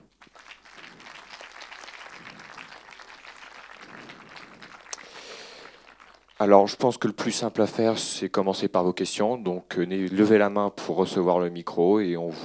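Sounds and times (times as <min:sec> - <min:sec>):
audience clapping: 0:00.0 - 0:07.7
speech: 0:06.4 - 0:12.4.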